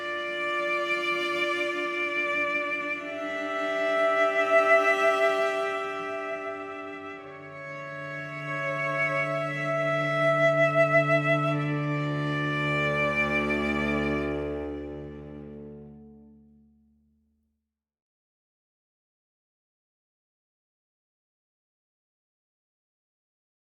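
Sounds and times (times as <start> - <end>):
cello: 0.0 - 16.8.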